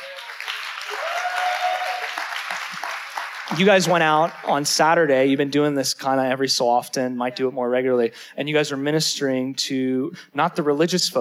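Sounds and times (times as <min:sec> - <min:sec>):
audience clapping for a speaker: 0:00.0 - 0:05.1
speech: 0:03.5 - 0:11.1.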